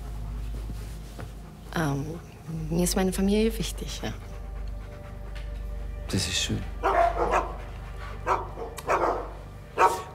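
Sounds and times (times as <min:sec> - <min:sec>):
speech: 0:01.8 - 0:04.3, 0:06.1 - 0:06.8
dogs barking: 0:03.9 - 0:10.1.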